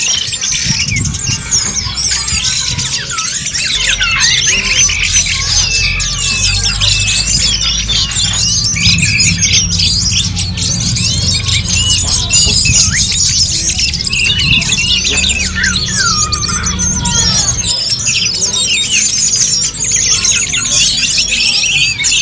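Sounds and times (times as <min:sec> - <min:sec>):
birds singing chorus: 0:00.0 - 0:22.2
steady low rumble: 0:04.9 - 0:17.7.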